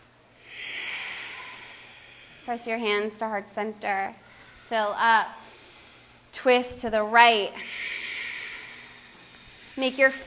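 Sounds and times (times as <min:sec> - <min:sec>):
ujjayi breath during yoga practice: 0:00.4 - 0:02.5, 0:07.6 - 0:09.8
speech: 0:02.5 - 0:05.4, 0:06.4 - 0:07.9, 0:09.8 - 0:10.2.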